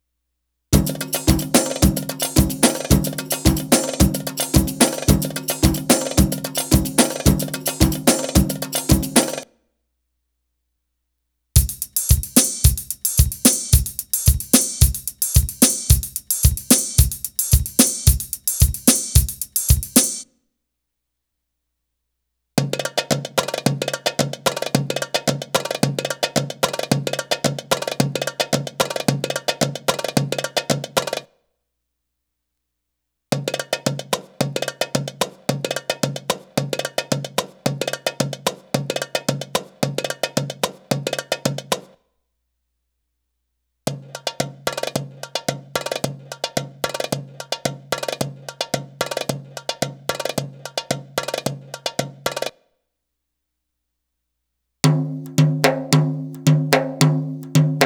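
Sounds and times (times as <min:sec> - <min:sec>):
Arabic rhythm percussion: 0:00.8 - 0:09.4, 0:11.6 - 0:20.2, 0:22.6 - 0:31.3, 0:33.4 - 0:41.9, 0:44.0 - 0:52.5, 0:54.8 - 0:57.8.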